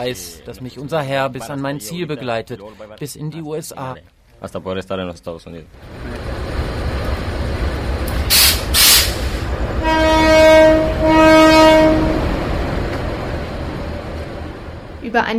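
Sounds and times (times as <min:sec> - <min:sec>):
speech: 0:00.0 - 0:06.2, 0:15.1 - 0:15.3
train pulling into a station: 0:05.8 - 0:15.3.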